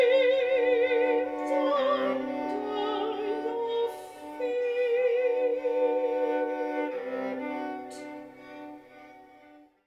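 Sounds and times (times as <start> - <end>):
soprano singing: 0.0 - 8.7
viola: 0.0 - 9.8.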